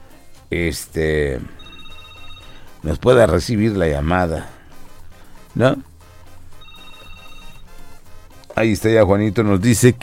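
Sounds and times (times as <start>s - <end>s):
speech: 0.5s - 1.6s, 2.8s - 4.6s, 5.6s - 5.9s, 8.6s - 10.0s
telephone ringing after a call is redialed: 1.4s - 3.2s, 5.4s - 8.3s.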